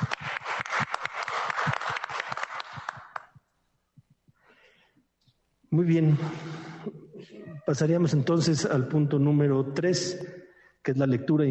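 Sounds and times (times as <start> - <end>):
audience applause: 0.0 - 3.3
speech: 5.8 - 6.5, 7.7 - 11.4.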